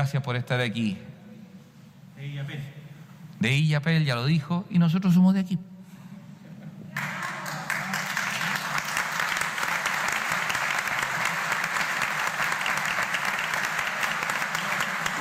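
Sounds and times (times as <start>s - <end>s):
speech: 0.0s - 1.2s, 2.2s - 2.8s, 3.4s - 5.7s
audience applause: 7.0s - 15.1s.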